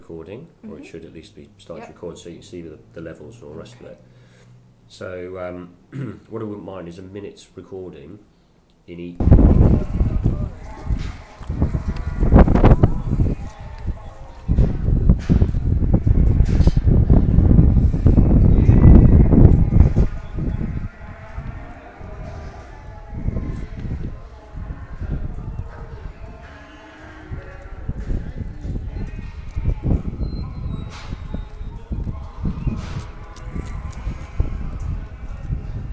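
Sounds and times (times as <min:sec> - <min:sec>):
sheep market ambience: 0:09.2 - 0:35.9.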